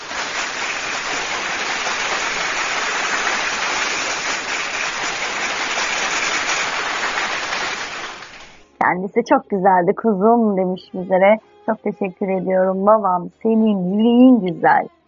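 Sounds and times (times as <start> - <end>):
applause: 0.0 - 8.7
speech: 8.9 - 15.0.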